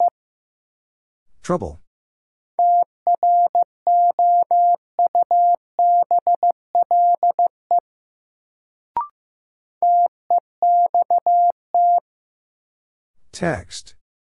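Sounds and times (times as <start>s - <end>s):
Morse code short and long beeps: 2.6s - 7.8s, 9.8s - 12.0s
person speaking a word: 13.4s - 14.0s.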